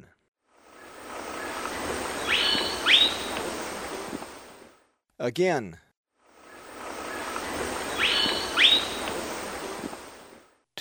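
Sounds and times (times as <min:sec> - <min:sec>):
Rufous-rumped foliage-gleaner calls in the eastern lowlands of South America: 0:00.7 - 0:04.7, 0:06.4 - 0:10.4.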